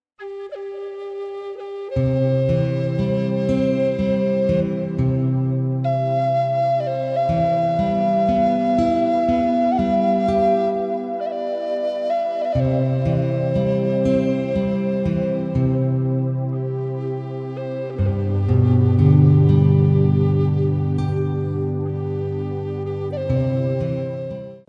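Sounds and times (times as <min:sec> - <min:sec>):
royalty-free music: 0:00.2 - 0:24.6.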